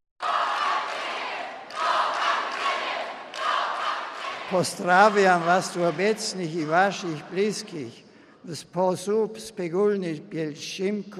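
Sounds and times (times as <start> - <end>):
crowd of Polish pilgrims cheering Pope Benedict XVI: 0.2 - 7.8
speech: 4.5 - 11.1.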